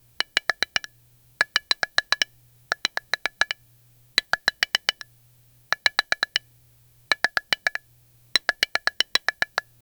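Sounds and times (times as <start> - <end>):
Lego bricks being assembled: 0.2 - 3.6, 4.2 - 5.1, 7.1 - 9.7.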